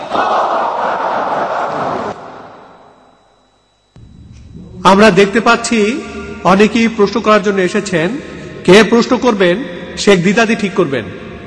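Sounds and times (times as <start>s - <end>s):
crowd at a religious gathering chanting in unison: 0.0s - 2.6s
speech: 4.8s - 11.2s.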